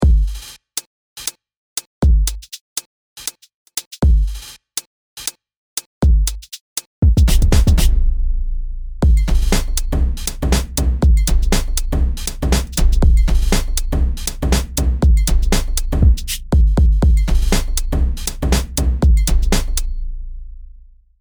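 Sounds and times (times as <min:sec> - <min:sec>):
remix beat: 0:00.0 - 0:00.5, 0:02.0 - 0:02.6, 0:03.2 - 0:04.5, 0:06.0 - 0:08.0, 0:09.0 - 0:20.0.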